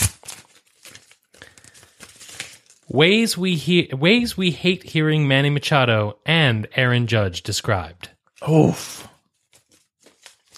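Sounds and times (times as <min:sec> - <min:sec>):
envelope being torn open: 0:00.0 - 0:02.9, 0:09.4 - 0:10.5
speech: 0:02.9 - 0:09.1.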